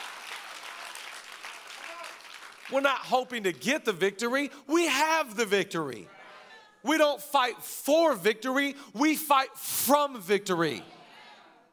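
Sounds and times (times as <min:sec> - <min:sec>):
crowd clapping: 0:00.0 - 0:04.0
speech: 0:02.7 - 0:06.2, 0:06.8 - 0:11.0.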